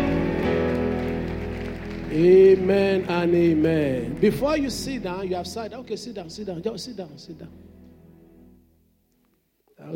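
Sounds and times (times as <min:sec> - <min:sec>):
audience applauding: 0:00.0 - 0:05.0
speech: 0:02.2 - 0:07.7, 0:09.8 - 0:09.9.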